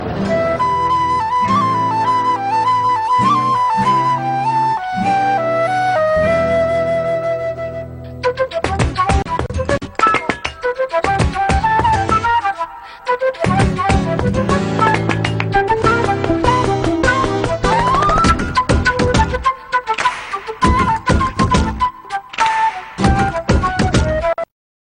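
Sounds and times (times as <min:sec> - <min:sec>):
flute sound effects: 0:00.0 - 0:24.5.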